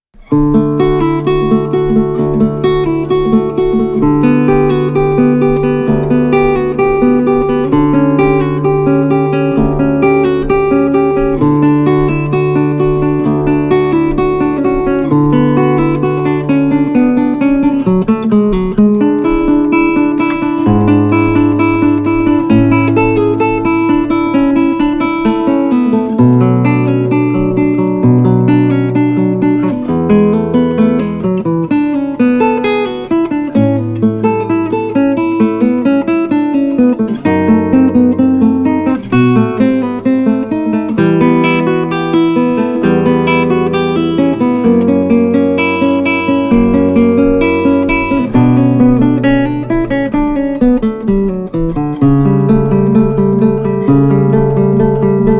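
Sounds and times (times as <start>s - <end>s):
Spanish guitar playing: 0.0s - 55.3s.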